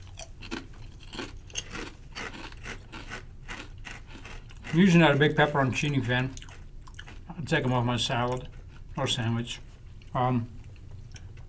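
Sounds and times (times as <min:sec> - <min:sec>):
crisp crunching of a thick kettle-cooked potato chip being chewed: 0:00.0 - 0:07.8
speech: 0:04.7 - 0:06.4, 0:07.4 - 0:10.6.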